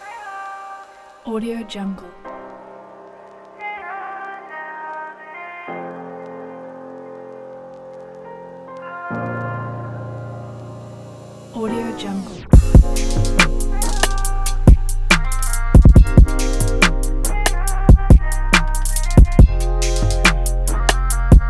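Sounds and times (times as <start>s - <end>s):
soul hip hop trap beat: 12.6s - 21.4s.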